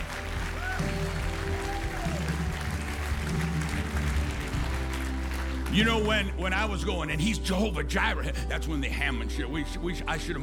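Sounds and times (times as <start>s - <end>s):
audience clapping: 0.0s - 7.2s
speech: 5.8s - 10.4s.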